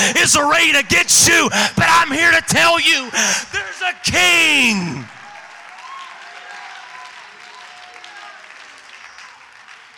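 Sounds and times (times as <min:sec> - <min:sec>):
speech: 0:00.0 - 0:05.2
audience clapping hands: 0:04.6 - 0:09.9.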